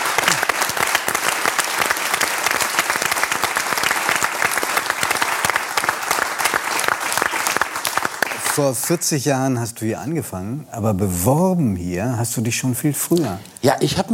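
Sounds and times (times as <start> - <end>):
audience applause: 0.0 - 9.0
speech: 8.6 - 14.1.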